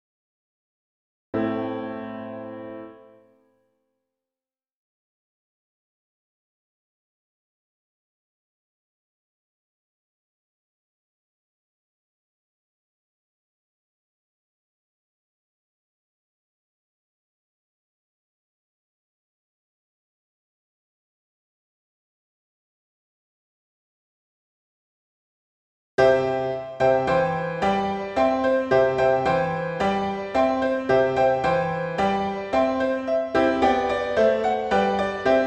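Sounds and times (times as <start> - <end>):
solo piano: 1.4 - 3.4, 26.0 - 35.4.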